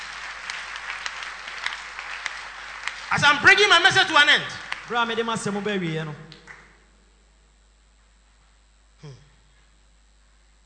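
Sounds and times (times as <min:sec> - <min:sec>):
crowd clapping: 0:00.0 - 0:06.8
speech: 0:03.1 - 0:06.3.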